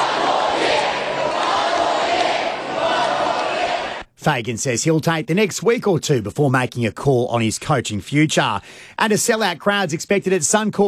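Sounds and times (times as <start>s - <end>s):
fans chanting at a parade: 0.0s - 4.0s
speech: 4.2s - 10.8s.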